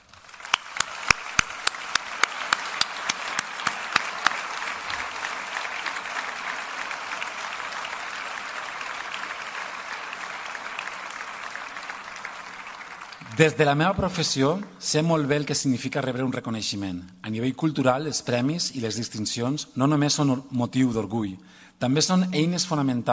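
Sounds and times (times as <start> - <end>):
audience applause: 0.0 - 14.1
speech: 13.4 - 23.1.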